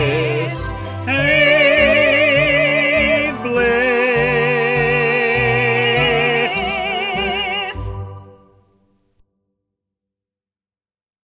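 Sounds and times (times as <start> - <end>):
vocals: 0.0 - 8.7.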